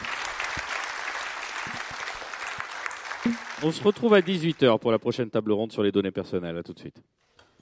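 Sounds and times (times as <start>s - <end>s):
audience applause: 0.0s - 4.7s
speech: 3.2s - 7.2s.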